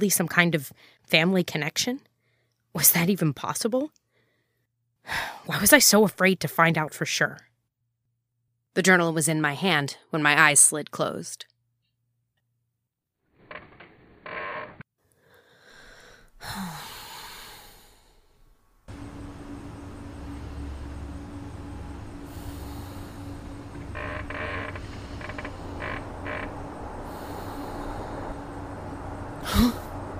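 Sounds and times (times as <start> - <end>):
speech: 0.0 - 2.1, 2.8 - 4.0, 5.0 - 7.5, 8.8 - 11.5, 16.4 - 16.8
hotel air conditioner humming: 18.8 - 30.1.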